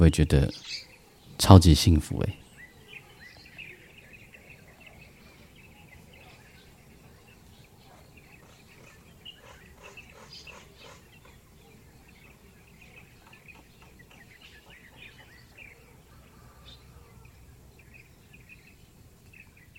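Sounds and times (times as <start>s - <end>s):
speech: 0.0s - 0.8s, 1.4s - 2.4s
birdsong: 0.0s - 19.7s.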